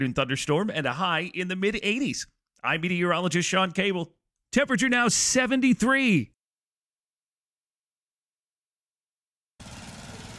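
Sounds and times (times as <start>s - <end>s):
speech: 0.0s - 6.4s
lawn mower engine running: 9.6s - 10.3s.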